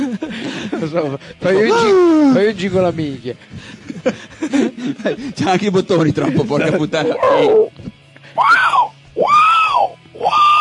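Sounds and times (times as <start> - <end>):
laughter: 0.0 - 1.6, 3.6 - 7.7
speech: 0.8 - 7.8
African bird call from a sound-effects machine: 8.4 - 10.5.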